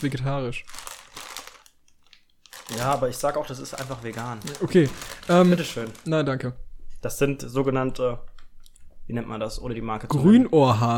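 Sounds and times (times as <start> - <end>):
speech: 0.0 - 1.0, 2.7 - 8.3, 9.1 - 10.9
snack wrapper crinkling: 0.0 - 6.1.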